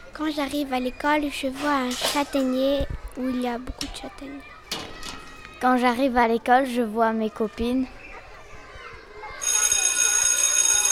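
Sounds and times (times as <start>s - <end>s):
speech: 0.2s - 4.6s, 5.6s - 8.0s
electric school bell ringing: 9.4s - 10.8s.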